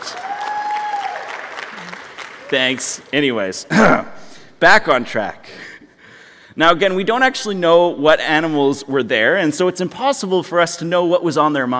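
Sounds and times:
audience round of applause: 0.0s - 3.1s
speech: 2.5s - 5.7s, 6.6s - 11.7s.

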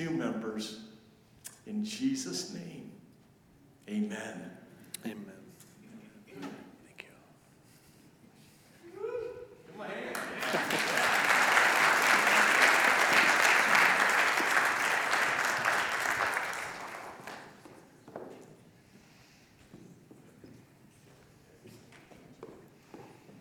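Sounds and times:
speech: 0.0s - 1.0s, 1.7s - 2.9s, 3.9s - 5.4s
audience clapping: 10.0s - 17.9s.

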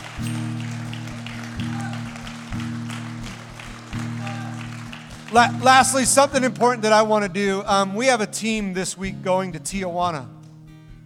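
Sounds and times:
audience hand clapping: 0.0s - 7.5s
speech: 5.3s - 10.4s.

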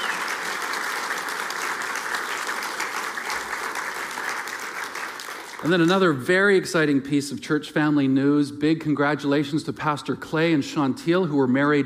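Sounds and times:
church congregation applauding its volunteers: 0.0s - 6.2s
speech: 5.6s - 11.8s.

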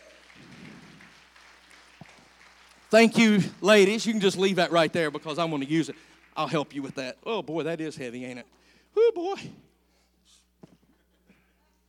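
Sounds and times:
audience hand clap: 0.0s - 7.6s
speech: 2.9s - 9.6s.

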